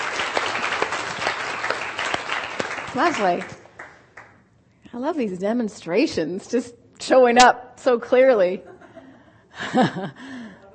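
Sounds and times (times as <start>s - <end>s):
audience applause after a volunteer's demonstration: 0.0s - 4.0s
speech: 2.9s - 3.6s, 4.9s - 8.8s, 9.6s - 10.3s.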